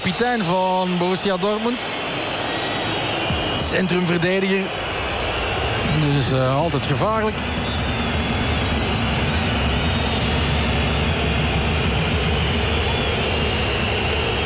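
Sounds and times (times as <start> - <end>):
speech: 0.0 - 2.2, 3.6 - 4.8, 5.9 - 7.6
stadium crowd roaring: 0.0 - 14.4.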